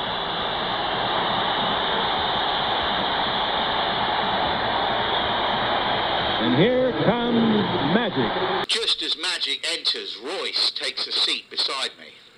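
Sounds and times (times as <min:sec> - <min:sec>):
large arena crowd cheering: 0:00.2 - 0:11.0
speech: 0:06.6 - 0:12.3.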